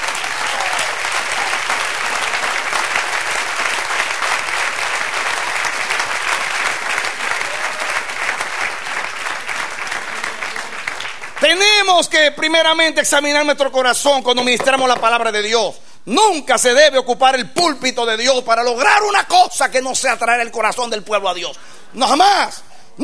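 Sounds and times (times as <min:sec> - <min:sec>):
audience applause: 0:00.0 - 0:11.6
speech: 0:12.0 - 0:23.0.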